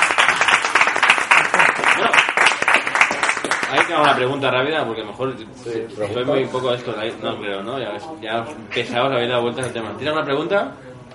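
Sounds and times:
audience applauding: 0.0s - 4.2s
speech: 3.8s - 11.1s.

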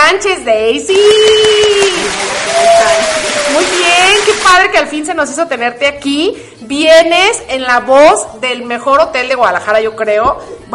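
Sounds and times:
speech: 0.2s - 1.4s, 4.5s - 10.7s
audience applause: 1.0s - 4.8s.

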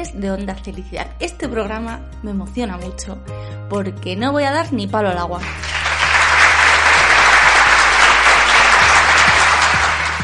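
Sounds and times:
speech: 0.0s - 5.8s
crowd applause: 5.4s - 10.2s.

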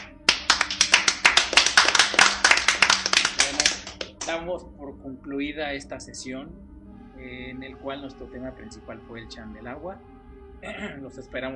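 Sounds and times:
applause: 0.0s - 4.4s
speech: 4.3s - 11.5s.

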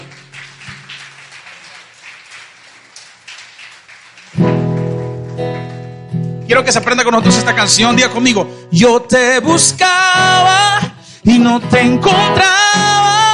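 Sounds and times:
audience applause: 0.0s - 7.2s
speech: 6.5s - 12.8s.

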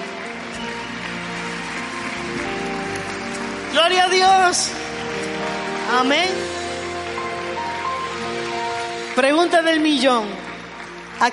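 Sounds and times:
audience clapping: 0.0s - 11.3s
soft sustained musical tone: 0.0s - 11.3s
speech: 3.9s - 4.8s, 5.9s - 6.5s, 9.2s - 10.4s, 11.2s - 11.3s.

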